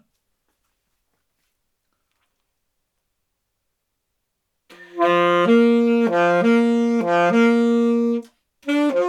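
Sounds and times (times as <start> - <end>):
saxophone: 4.7 - 9.0.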